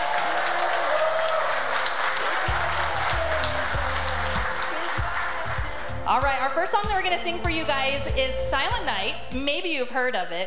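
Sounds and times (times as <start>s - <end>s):
audience applause: 0.0s - 6.2s
speech: 6.1s - 10.4s.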